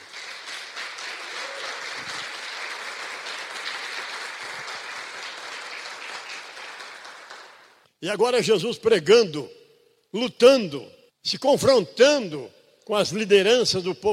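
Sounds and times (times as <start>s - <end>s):
audience applauding: 0.0s - 7.8s
speech: 8.0s - 14.1s.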